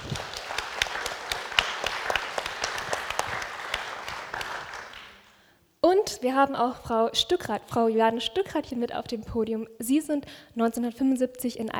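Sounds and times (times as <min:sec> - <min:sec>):
audience applause: 0:00.0 - 0:05.4
speech: 0:06.2 - 0:11.7.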